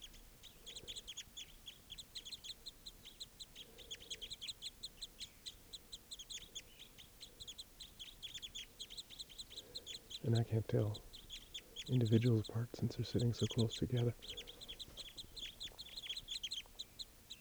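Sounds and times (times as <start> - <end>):
crossbill flock calls: 3.6 - 17.3
speech: 10.3 - 11.1, 11.9 - 14.4.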